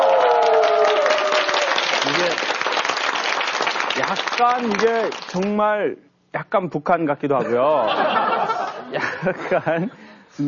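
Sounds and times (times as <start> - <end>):
audience applause: 0.0 - 5.5
speech: 4.4 - 8.3, 8.9 - 10.4
laughter: 7.4 - 10.0.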